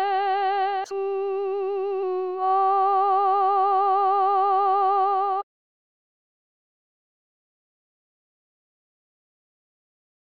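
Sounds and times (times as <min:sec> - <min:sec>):
soprano singing: 0:00.0 - 0:05.5.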